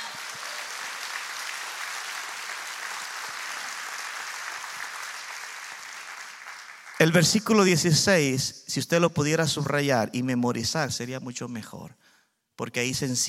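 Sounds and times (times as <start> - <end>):
audience applause: 0.0 - 7.2
speech: 7.0 - 13.2.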